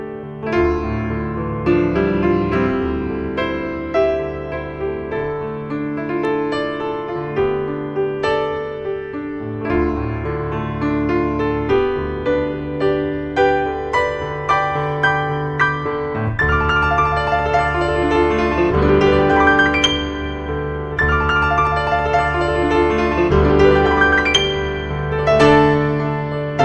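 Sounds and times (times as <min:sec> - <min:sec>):
instrumental hymn: 0:00.2 - 0:26.6.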